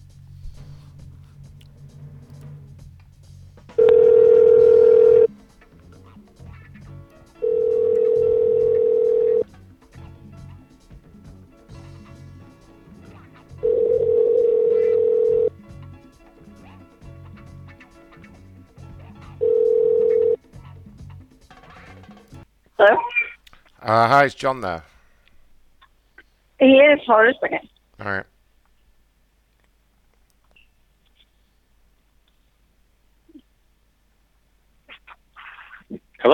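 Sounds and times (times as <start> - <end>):
low hiss: 0.0 - 36.3
telephone line tones as a call is placed: 3.8 - 5.3, 7.4 - 9.4, 13.6 - 15.5, 19.4 - 20.4
speech: 23.9 - 24.9, 26.6 - 28.3.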